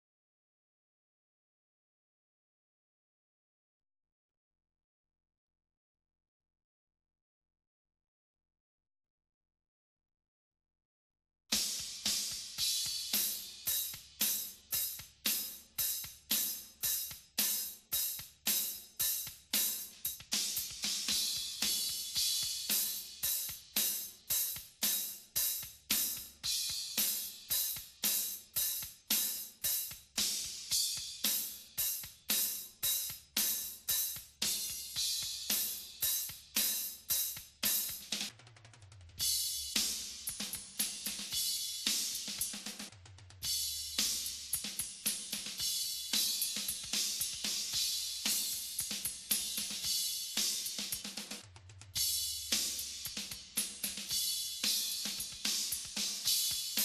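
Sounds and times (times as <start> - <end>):
cymbals: 11.5 - 38.3, 39.2 - 51.4, 52.0 - 56.8.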